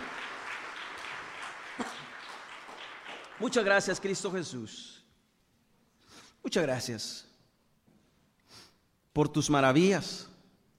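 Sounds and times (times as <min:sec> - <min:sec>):
audience applause: 0:00.0 - 0:04.4
speech: 0:03.4 - 0:05.0, 0:06.4 - 0:07.3, 0:09.2 - 0:10.3.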